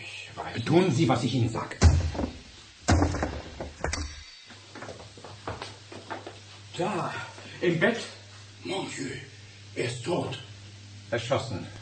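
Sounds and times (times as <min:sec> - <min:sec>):
speech: 0:00.4 - 0:02.3, 0:06.8 - 0:10.5, 0:11.1 - 0:11.8
wood splintering as the door gives way: 0:01.8 - 0:03.9
locked wooden door being forced open: 0:01.8 - 0:04.2
lighter knocks and rattles as the wood gives way: 0:01.8 - 0:05.0.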